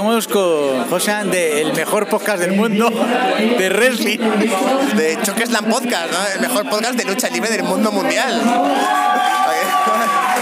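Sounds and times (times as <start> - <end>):
speech: 0.0 - 10.4
crowd applauding: 7.9 - 10.4.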